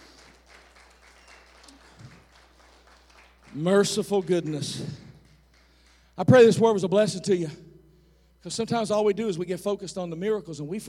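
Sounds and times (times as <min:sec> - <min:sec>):
audience clapping: 0:00.0 - 0:06.2
speech: 0:03.5 - 0:05.0, 0:06.2 - 0:07.6, 0:08.4 - 0:10.8.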